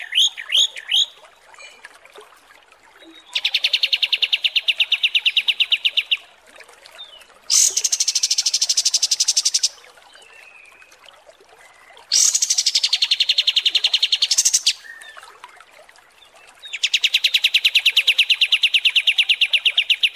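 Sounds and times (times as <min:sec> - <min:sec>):
kapas tembak small bird song: 0:00.0 - 0:01.1, 0:03.2 - 0:06.2, 0:07.5 - 0:09.8, 0:12.1 - 0:15.0, 0:16.7 - 0:20.1.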